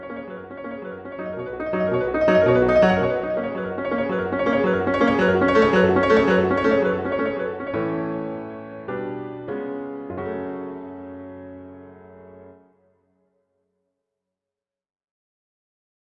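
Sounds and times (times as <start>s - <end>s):
molto agitato music in F sharp minor: 0.0s - 9.5s.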